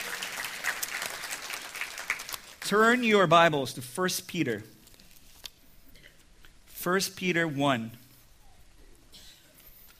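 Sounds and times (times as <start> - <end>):
audience clapping hands: 0.0 - 3.0
speech: 2.7 - 4.8, 6.8 - 8.0.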